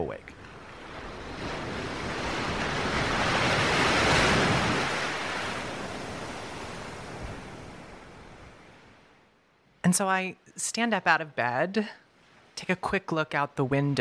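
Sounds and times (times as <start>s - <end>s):
speech: 0.0s - 0.4s, 9.9s - 12.0s, 12.6s - 13.9s
large wave hitting a boat: 0.4s - 8.7s.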